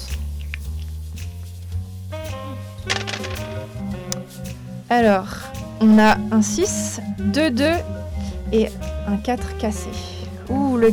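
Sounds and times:
dice being thrown: 0:02.9 - 0:04.3
speech: 0:04.9 - 0:10.9.

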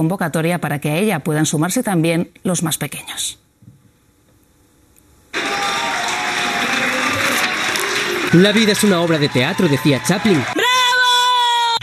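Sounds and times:
speech: 0:00.0 - 0:03.4, 0:08.3 - 0:10.6
applause from windows and balconies across Spain for health workers: 0:05.3 - 0:11.8.

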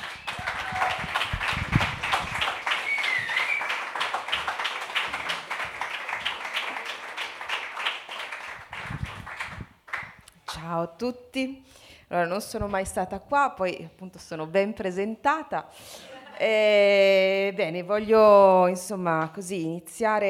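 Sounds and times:
audience applause: 0:00.0 - 0:10.1
speech: 0:11.0 - 0:20.2.

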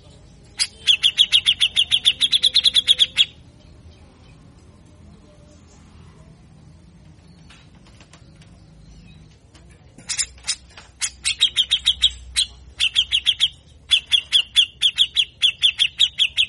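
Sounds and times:
grey-cheeked bulbul giving harsh chirps and rasping sweeps: 0:00.5 - 0:03.4, 0:10.1 - 0:16.4.

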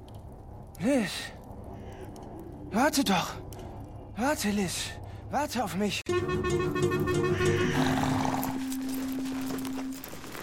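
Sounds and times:
speech: 0:00.8 - 0:01.4, 0:02.7 - 0:03.4, 0:04.2 - 0:08.2
horse hooves clip-clopping: 0:07.7 - 0:10.4.

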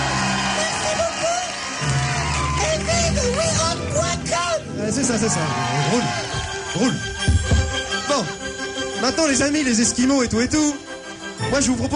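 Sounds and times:
audience applause: 0:00.0 - 0:06.9
speech: 0:04.8 - 0:07.3, 0:08.2 - 0:08.4, 0:09.0 - 0:11.9.

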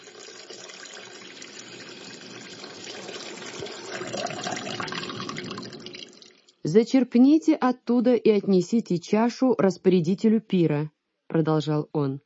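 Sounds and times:
water poured into large vessels: 0:00.0 - 0:06.6
speech: 0:06.7 - 0:12.2.

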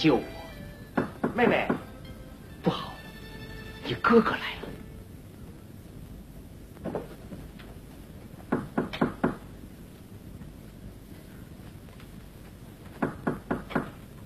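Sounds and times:
speech: 0:00.0 - 0:00.3, 0:01.4 - 0:01.8, 0:02.6 - 0:03.0, 0:03.9 - 0:04.7
faint steady hiss: 0:00.0 - 0:14.2
knocking on a door in a traditional Chinese opera scene: 0:01.0 - 0:02.0, 0:08.5 - 0:09.4, 0:13.0 - 0:14.0.

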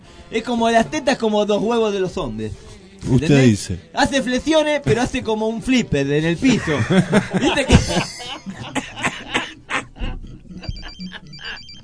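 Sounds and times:
speech: 0:00.3 - 0:08.9
laughter: 0:06.4 - 0:11.8
telephone ringing with electronic trill: 0:10.5 - 0:11.8.

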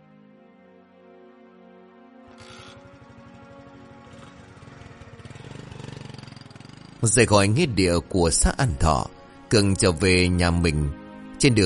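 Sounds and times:
motorbike engine on a ride: 0:02.3 - 0:08.8
speech: 0:07.0 - 0:11.6.

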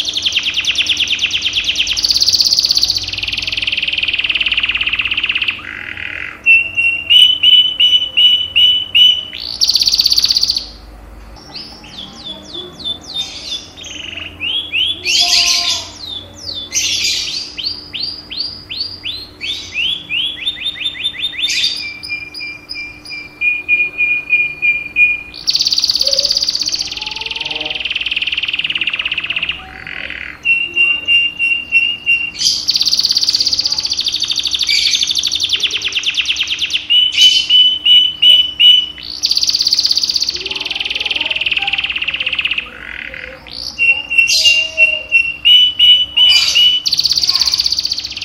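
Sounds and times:
canary song: 0:00.0 - 0:48.2.

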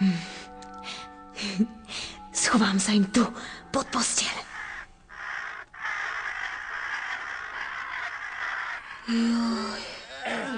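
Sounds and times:
speech: 0:01.5 - 0:01.8, 0:02.5 - 0:04.5, 0:09.1 - 0:09.6
ravens cawing: 0:03.8 - 0:10.5.

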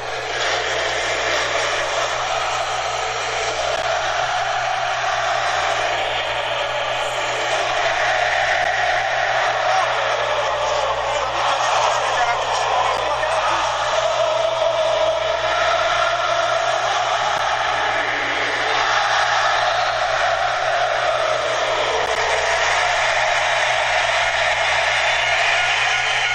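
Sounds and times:
crowd singing a national anthem in an arena: 0:00.0 - 0:26.3.

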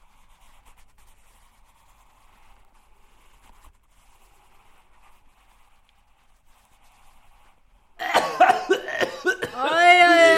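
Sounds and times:
person coughing: 0:08.0 - 0:10.3
drawn-out voiced sound: 0:09.5 - 0:10.3.

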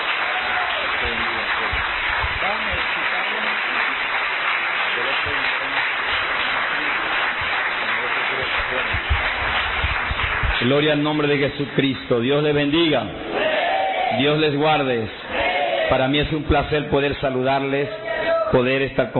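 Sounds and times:
audience applause: 0:00.0 - 0:12.0
speech: 0:10.7 - 0:13.3, 0:14.2 - 0:15.3, 0:15.9 - 0:19.1.

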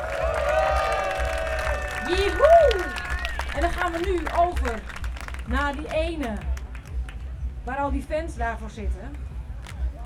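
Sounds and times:
crowd applauding and cheering: 0:00.0 - 0:07.3
speech: 0:03.6 - 0:06.5, 0:07.7 - 0:09.2.

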